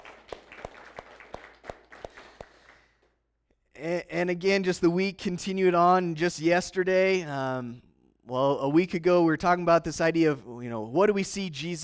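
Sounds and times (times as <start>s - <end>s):
round of applause: 0.0s - 3.0s
speech: 3.8s - 11.8s.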